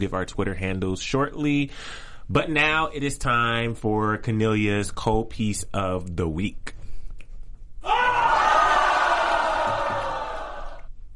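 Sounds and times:
speech: 0.0s - 6.8s
live studio audience cheering, yelling and whooping: 7.8s - 10.9s.

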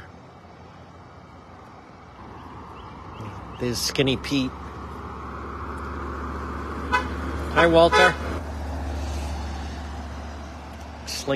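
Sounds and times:
low constant traffic hum: 0.0s - 11.3s
speech: 3.2s - 4.7s, 7.6s - 8.3s, 11.2s - 11.3s
car horn toot on a road: 6.9s - 8.3s.

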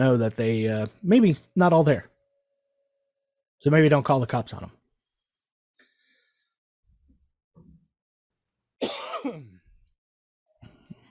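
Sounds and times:
speech: 0.0s - 2.1s, 3.6s - 4.8s
person coughing: 8.8s - 9.6s.

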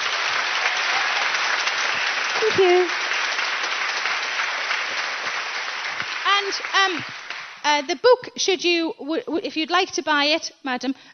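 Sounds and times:
audience applause: 0.0s - 7.6s
speech: 2.5s - 3.0s, 6.5s - 11.1s.

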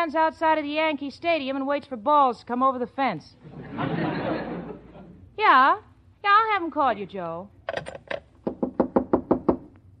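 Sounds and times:
speech: 0.0s - 4.3s, 5.4s - 7.9s
laughter: 3.5s - 5.2s
knocking on a door: 8.4s - 9.8s.

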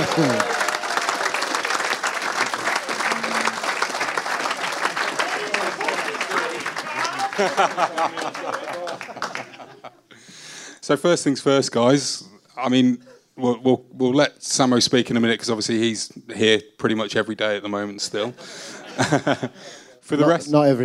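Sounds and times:
crowd chatter: 0.0s - 0.8s, 2.4s - 9.0s
cheering voices: 0.0s - 9.8s
crowd round of applause: 0.0s - 9.9s
speech: 0.2s - 0.5s, 7.4s - 9.7s, 10.9s - 20.8s
laughter: 2.6s - 10.1s, 18.2s - 19.9s.

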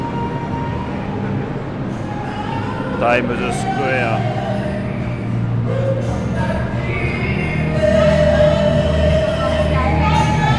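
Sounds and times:
New York subway train pulling into Times Square station: 0.0s - 10.5s
faint high whine: 0.0s - 10.5s
speech: 3.0s - 4.7s.

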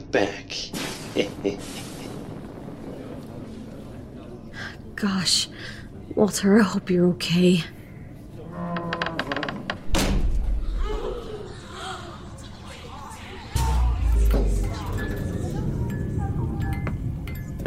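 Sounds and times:
rumbling background: 0.0s - 17.6s
speech: 0.1s - 1.8s, 5.0s - 5.6s, 6.2s - 7.8s
heavy door slamming shut: 9.8s - 10.6s.

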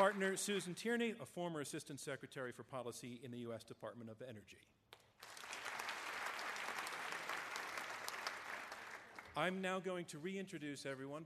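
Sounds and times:
speech: 0.0s - 5.4s, 9.4s - 11.2s
audience applause: 5.2s - 9.6s.

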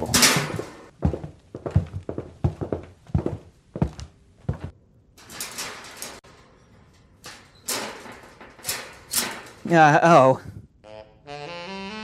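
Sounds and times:
footsteps of people coming down hallway: 0.0s - 4.8s
speech: 9.7s - 10.6s.

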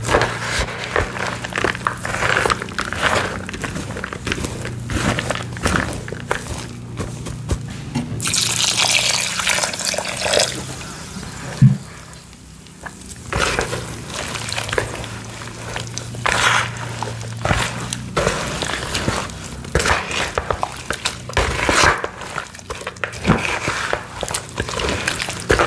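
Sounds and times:
dyed gym chalk blocks crushed into a bowl of water: 0.0s - 25.6s
bright hissing fizz: 8.3s - 12.2s.

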